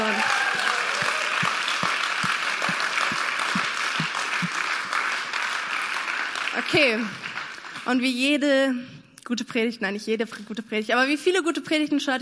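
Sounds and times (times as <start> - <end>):
applause: 0.0 - 8.4
speech: 6.7 - 7.2, 7.9 - 12.1.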